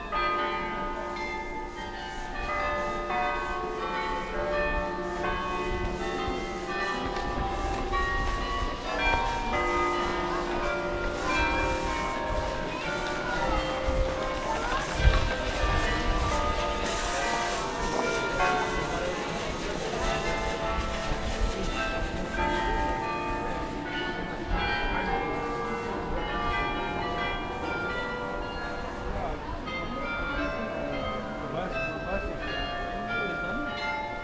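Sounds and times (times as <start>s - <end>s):
bells ringing: 0.0s - 34.2s.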